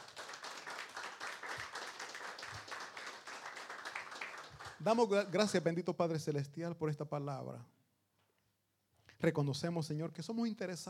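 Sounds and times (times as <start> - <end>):
audience applause: 0.0 - 5.1
speech: 4.8 - 7.8, 9.2 - 10.8.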